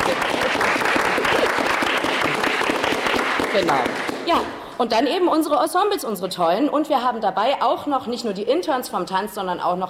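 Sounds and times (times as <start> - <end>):
audience applause: 0.0 - 4.2
speech: 3.6 - 9.8.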